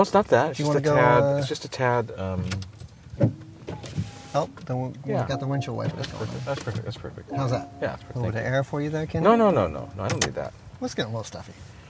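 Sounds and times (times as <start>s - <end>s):
speech: 0.0s - 3.4s, 4.4s - 11.8s
low hiss: 0.1s - 11.8s
Porsche electric window motors whirring as the power windows are lowered: 3.2s - 4.8s.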